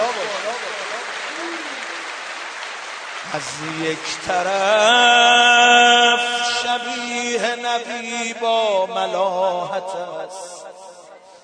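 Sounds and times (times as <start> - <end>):
audience hand clapping: 0.0 - 7.2
speech: 3.3 - 10.5.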